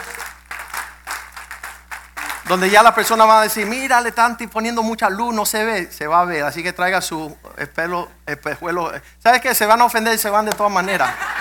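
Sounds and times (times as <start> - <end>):
audience applause: 0.0 - 3.9
speech: 2.5 - 11.3
laughter: 10.8 - 11.3.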